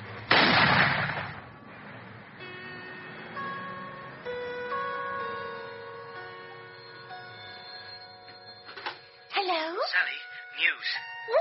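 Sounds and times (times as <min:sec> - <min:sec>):
gunshot in a film scene: 0:00.3 - 0:01.5
steady sustained tones: 0:02.1 - 0:11.3
speech: 0:09.8 - 0:11.3.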